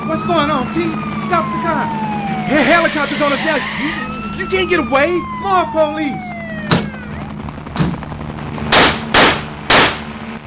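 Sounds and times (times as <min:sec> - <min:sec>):
speech: 0:00.1 - 0:06.4
gunshots: 0:06.7 - 0:10.3.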